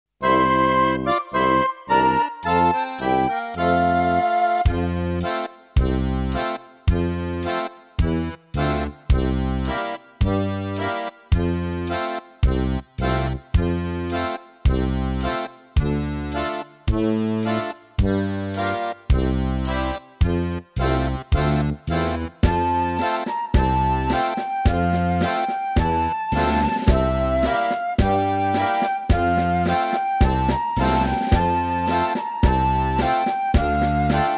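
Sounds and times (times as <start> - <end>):
guitar playing nursery rhyme: 0.2 - 34.3.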